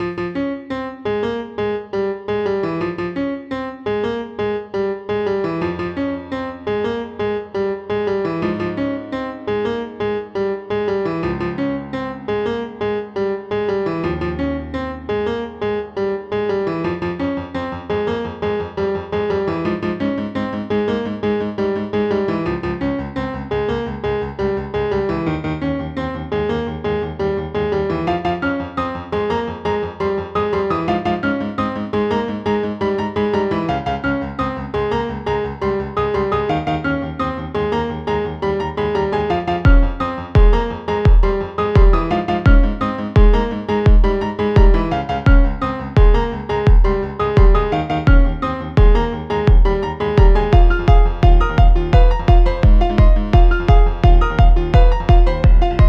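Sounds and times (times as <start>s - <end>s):
piano: 0.0s - 55.8s.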